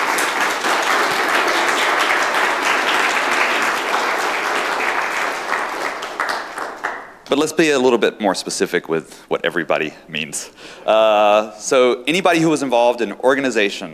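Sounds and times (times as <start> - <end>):
audience round of applause: 0.0 - 7.2
speech: 7.3 - 13.9.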